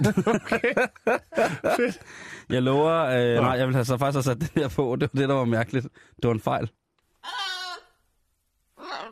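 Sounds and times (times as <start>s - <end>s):
laughter: 0.0s - 2.1s
speech: 0.0s - 7.4s
three-year-old African grey parrot squawking: 7.2s - 8.0s, 8.8s - 9.0s.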